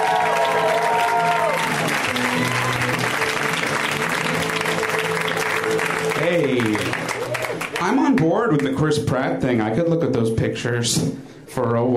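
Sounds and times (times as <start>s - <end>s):
comedy audience applauding a comic: 0.0s - 9.1s
comedy crowd noise: 0.0s - 9.9s
speech: 8.9s - 11.9s.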